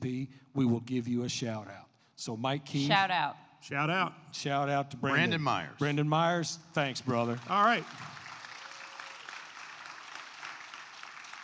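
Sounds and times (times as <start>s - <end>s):
speech: 0.0s - 8.2s
audience applause: 6.9s - 11.4s.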